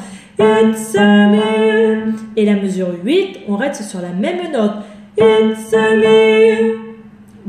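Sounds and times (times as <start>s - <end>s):
tenor voice: 0.4s - 3.3s, 5.2s - 7.0s.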